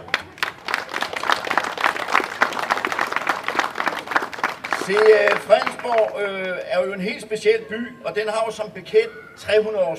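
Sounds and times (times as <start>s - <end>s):
audience applause: 0.0s - 6.4s
speech: 4.9s - 9.9s.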